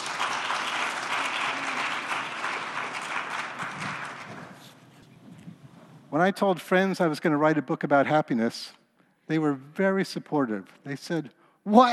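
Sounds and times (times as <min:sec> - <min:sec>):
crowd applause: 0:00.0 - 0:04.8
speech: 0:06.2 - 0:11.9.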